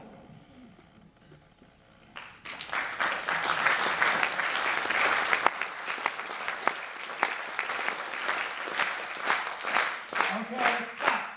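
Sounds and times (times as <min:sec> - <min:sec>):
audience clapping in a shared rhythm: 0:02.1 - 0:11.3.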